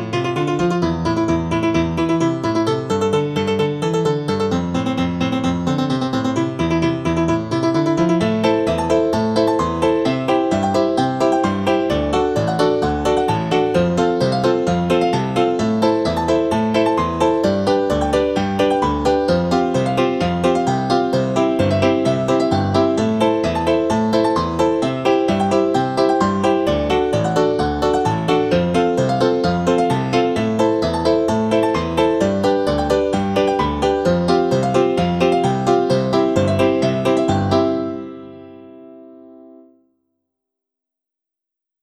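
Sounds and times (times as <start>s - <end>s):
short piano piece: 0.0s - 39.9s.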